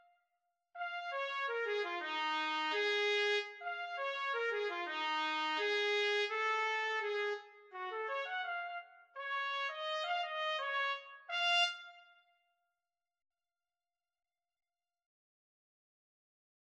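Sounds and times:
trumpet duet: 0.8 - 12.2.

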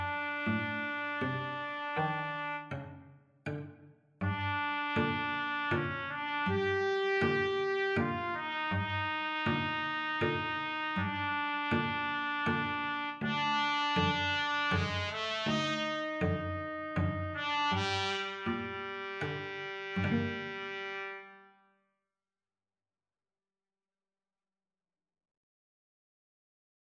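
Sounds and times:
Sicilian trumpet-cello duet: 0.0 - 3.6, 4.2 - 21.6.

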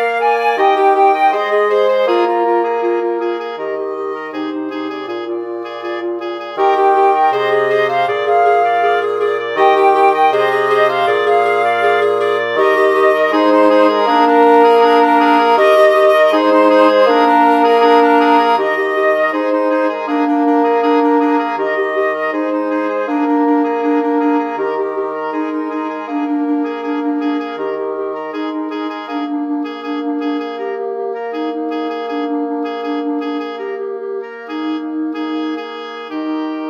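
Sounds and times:
wind quartet playing: 0.0 - 36.6.

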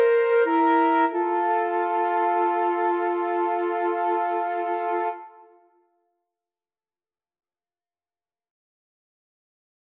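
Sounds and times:
yodel tune flute duet: 0.0 - 5.8.

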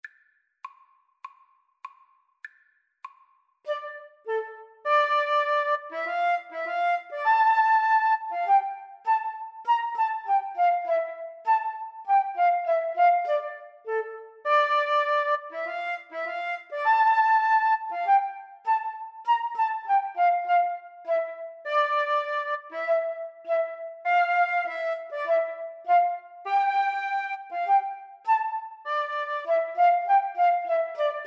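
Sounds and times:
flute duet: 3.7 - 31.2.

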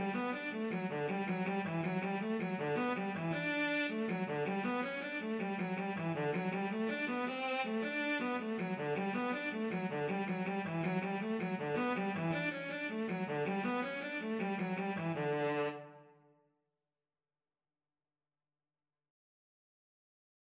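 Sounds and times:
cello: 0.0 - 16.0.

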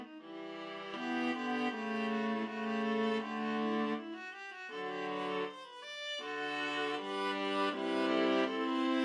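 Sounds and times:
viola trio playing a baroque gavotte: 0.4 - 4.1, 6.3 - 9.0.

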